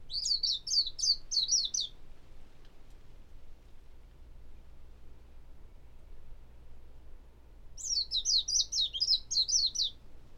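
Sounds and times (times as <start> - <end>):
warbling white-eye twittering: 0.1 - 1.9, 7.8 - 9.9.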